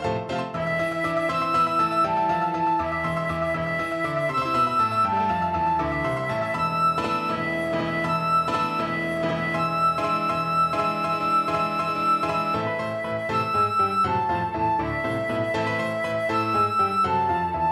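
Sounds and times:
flute playing a scherzo: 0.1s - 17.6s.

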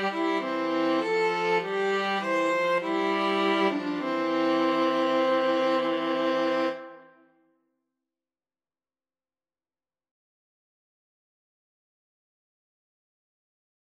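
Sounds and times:
string trio karaoke: 0.0s - 7.1s.

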